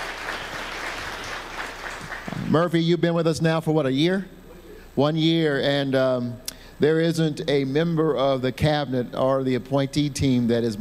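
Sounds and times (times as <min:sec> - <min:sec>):
audience applause: 0:00.0 - 0:02.5
speech: 0:02.5 - 0:04.4, 0:05.0 - 0:10.7.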